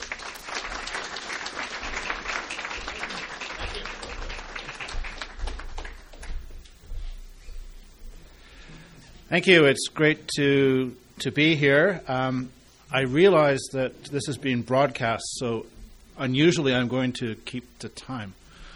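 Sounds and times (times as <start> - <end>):
audience applause welcoming guest speaker Dr. Michael Byers: 0.0 - 6.3
speech: 9.3 - 18.4.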